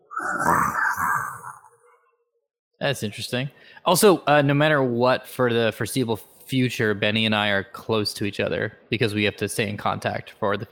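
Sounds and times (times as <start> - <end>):
loud rough growl: 0.0 - 1.7
speech: 0.2 - 1.2, 2.8 - 10.7.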